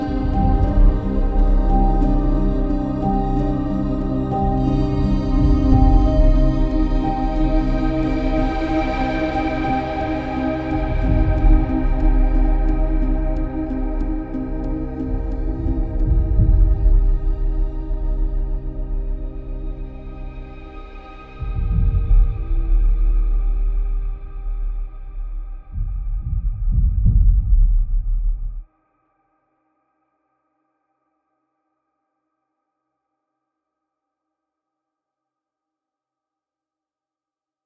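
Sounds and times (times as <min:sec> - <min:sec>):
piano: 0:00.0 - 0:28.6.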